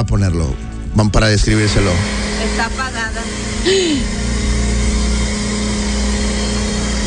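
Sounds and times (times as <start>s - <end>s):
speech: 0.0s - 4.2s
blender running: 1.5s - 7.0s.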